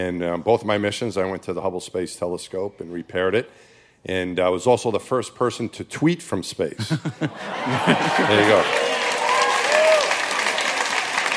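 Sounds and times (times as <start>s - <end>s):
speech: 0.0s - 8.9s
laughter: 6.8s - 9.0s
audience applause: 7.4s - 11.3s
faint cheers or whistles: 8.0s - 10.9s.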